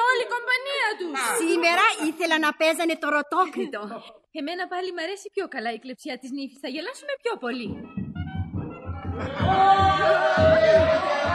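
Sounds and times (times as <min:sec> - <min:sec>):
speech: 0:01.1 - 0:08.0, 0:09.2 - 0:11.3
crowd shouting: 0:09.2 - 0:11.3.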